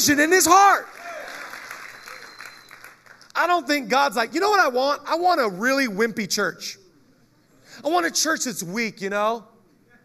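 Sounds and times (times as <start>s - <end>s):
speech: 0.0s - 1.0s, 3.4s - 6.8s, 7.8s - 9.5s
audience clapping: 0.7s - 3.4s.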